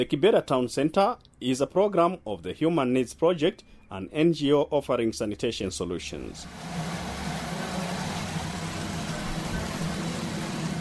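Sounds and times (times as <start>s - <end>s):
speech: 0.0s - 6.8s
pump drawing water from a borehole into three 5000-liter tanks: 6.4s - 10.7s.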